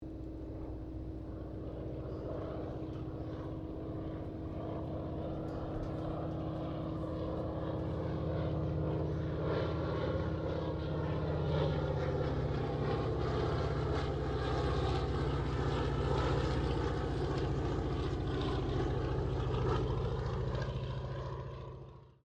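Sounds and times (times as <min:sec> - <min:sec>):
1916 Sopwith Pup replica aircraft passing: 0:00.0 - 0:22.2.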